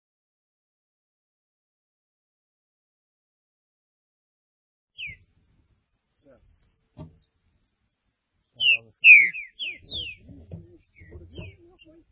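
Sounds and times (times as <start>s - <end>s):
green-winged saltator whistling: 8.6s - 12.0s.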